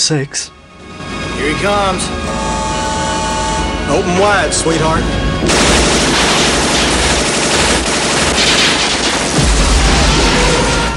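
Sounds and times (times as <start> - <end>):
speech: 0.1 - 0.6, 1.4 - 2.7, 3.9 - 5.8
automatic gunfire at a lift carrying a mine: 5.5 - 10.8.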